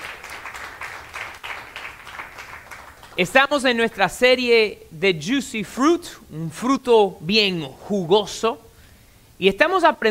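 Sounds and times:
audience applause: 0.0 - 3.2
speech: 3.2 - 8.6, 9.4 - 10.0.

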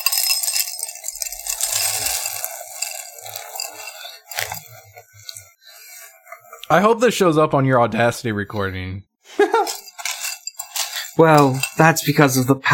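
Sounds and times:
cereal pouring from bag into bowl: 0.0 - 5.5, 9.6 - 12.0
speech: 6.7 - 9.1, 11.2 - 12.7.

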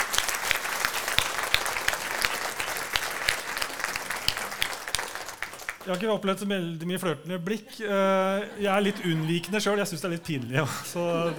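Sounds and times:
audience clapping: 0.0 - 6.3
speech: 5.8 - 11.3
laughter: 7.4 - 11.3.

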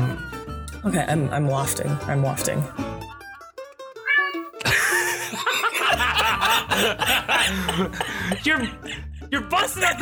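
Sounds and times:
speech: 0.8 - 3.0, 6.8 - 10.0
cat meowing: 4.0 - 4.6
people laughing and chuckling: 4.6 - 8.8.

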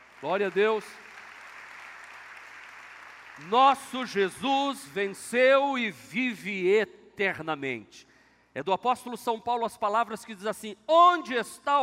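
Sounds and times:
audience applause: 0.0 - 4.0
speech: 0.2 - 1.0, 3.4 - 11.8.

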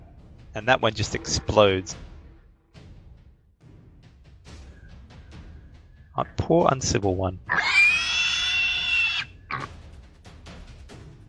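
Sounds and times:
speech: 0.5 - 2.1, 6.2 - 7.7
pig sound effect: 7.5 - 9.7.

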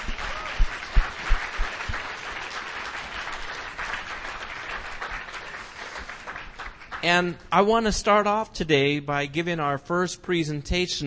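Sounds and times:
audience applause: 0.0 - 7.2
speech: 7.0 - 11.0.

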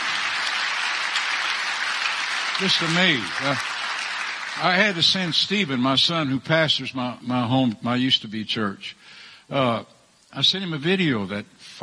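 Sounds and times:
audience clapping: 0.0 - 5.8
speech: 2.6 - 3.7, 4.6 - 11.8.

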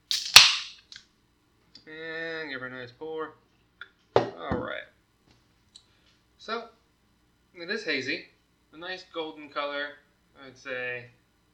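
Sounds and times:
aluminum beer can tab cracking open: 0.1 - 0.9
speech: 1.9 - 3.5, 4.4 - 4.9, 6.4 - 6.7, 7.6 - 11.2.

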